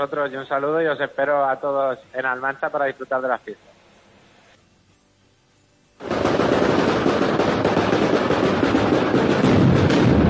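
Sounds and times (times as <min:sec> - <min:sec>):
speech: 0:00.0 - 0:03.7
mascletà firecracker barrage: 0:06.0 - 0:10.2.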